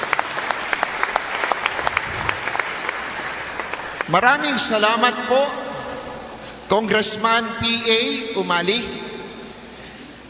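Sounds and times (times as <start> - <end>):
audience applause for Jesuit missionary representatives: 0.0 - 4.3
speech: 4.1 - 5.6, 6.7 - 9.0.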